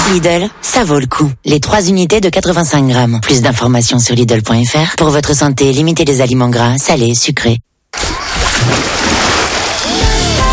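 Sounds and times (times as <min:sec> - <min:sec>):
speech: 0:00.1 - 0:08.0, 0:08.6 - 0:09.0
splash of a dive into water: 0:08.0 - 0:10.4.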